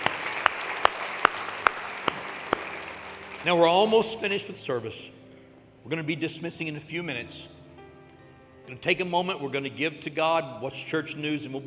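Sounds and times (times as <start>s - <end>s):
audience applauding: 0.0s - 4.2s
speech: 3.4s - 5.2s, 5.9s - 7.6s, 8.7s - 11.6s.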